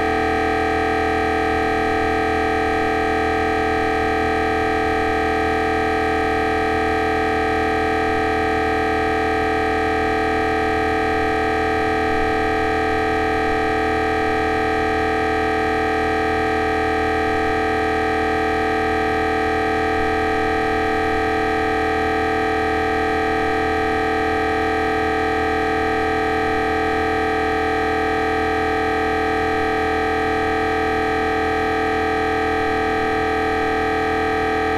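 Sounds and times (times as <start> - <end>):
MRI tomography scanner: 0.0 - 34.7.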